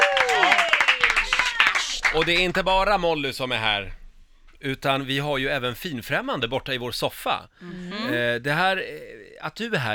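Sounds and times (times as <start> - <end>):
studio applause: 0.0 - 2.7
speech: 2.1 - 4.0, 4.6 - 9.9.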